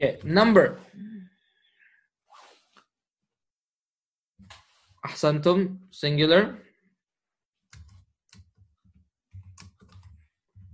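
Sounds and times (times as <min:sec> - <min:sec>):
speech: 0:00.0 - 0:00.8, 0:05.0 - 0:06.6
typing on a computer keyboard: 0:07.7 - 0:10.7.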